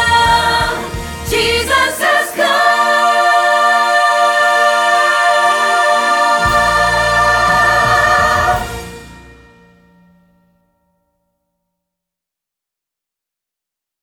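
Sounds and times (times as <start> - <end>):
soprano singing: 0.0 - 8.9.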